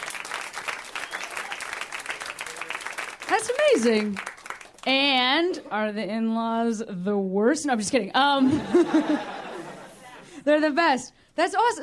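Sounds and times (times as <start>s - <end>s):
audience applause at a live show: 0.0s - 4.8s
speech: 3.4s - 9.4s, 10.4s - 11.8s
laughter: 8.4s - 10.4s.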